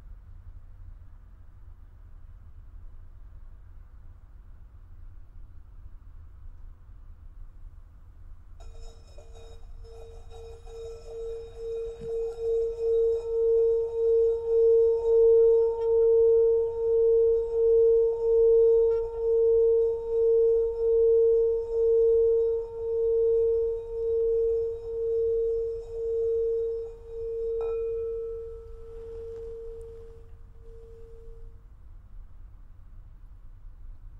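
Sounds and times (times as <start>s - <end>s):
meditation bell ringing: 8.6s - 31.5s.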